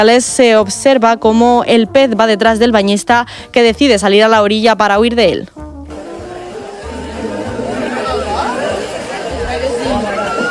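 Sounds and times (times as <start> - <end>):
speech: 0.0 - 5.6
crowd of people on a beach chattering and calling out: 5.9 - 10.4.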